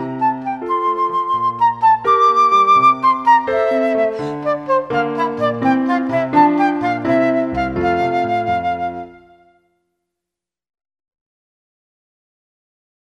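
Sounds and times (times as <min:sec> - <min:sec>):
instrumental accompaniment: 0:00.0 - 0:09.7
flute: 0:00.0 - 0:09.8.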